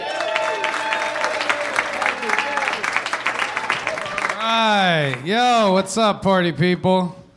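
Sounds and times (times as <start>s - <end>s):
crowd applauding: 0.0s - 5.7s
speech: 4.8s - 7.2s.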